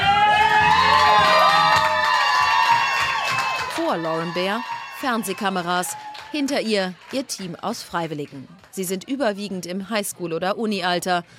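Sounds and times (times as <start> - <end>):
crowd cheering loudly at election night: 0.0 - 7.6
speech: 3.9 - 11.3.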